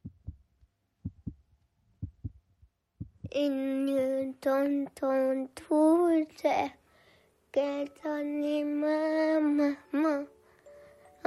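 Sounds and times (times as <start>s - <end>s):
heartbeat: 0.0s - 3.4s
speech: 3.4s - 6.8s, 7.6s - 10.4s.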